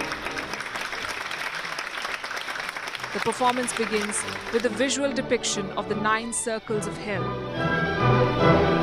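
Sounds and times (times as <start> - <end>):
opera theater audience applause: 0.0 - 5.1
speech: 3.1 - 8.7.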